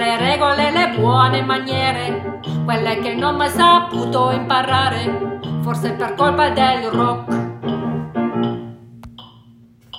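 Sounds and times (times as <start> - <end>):
tenor singing: 0.0 - 7.4.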